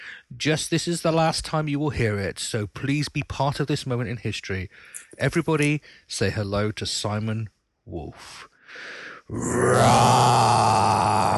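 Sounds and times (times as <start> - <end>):
speech: 0.3 - 11.3
person imitating a roar: 9.3 - 11.3.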